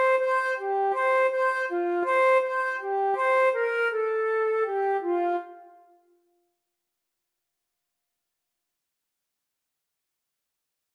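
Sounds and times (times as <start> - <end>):
flute duet: 0.0 - 5.9.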